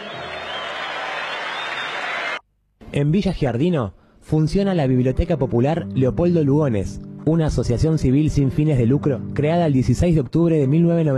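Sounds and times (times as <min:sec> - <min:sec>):
crowd applauding: 0:00.0 - 0:02.4
speech: 0:02.9 - 0:11.1.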